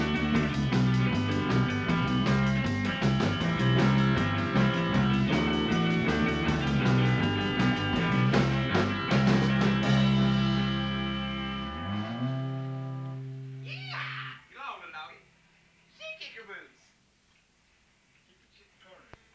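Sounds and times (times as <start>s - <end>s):
country ska music: 0.0s - 14.2s.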